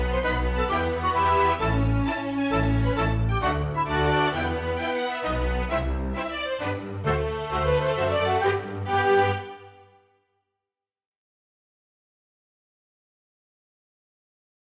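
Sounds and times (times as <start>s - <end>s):
polka mazurka music: 0.0s - 10.0s.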